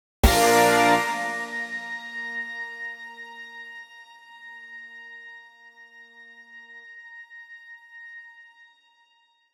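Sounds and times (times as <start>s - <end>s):
musical chord: 0.2s - 2.9s.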